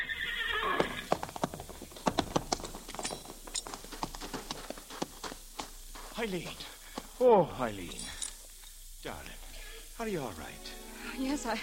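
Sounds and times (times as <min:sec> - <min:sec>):
horse whinnying: 0:00.0 - 0:01.4
horse hooves clip-clopping: 0:00.4 - 0:09.4
speech: 0:06.2 - 0:08.1, 0:09.0 - 0:09.4, 0:10.0 - 0:11.6.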